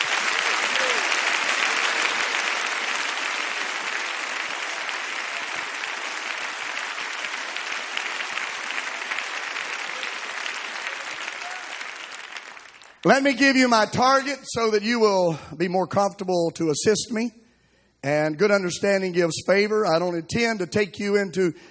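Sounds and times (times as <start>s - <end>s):
large group clapping: 0.0s - 13.4s
speech: 13.1s - 17.4s, 18.0s - 21.6s.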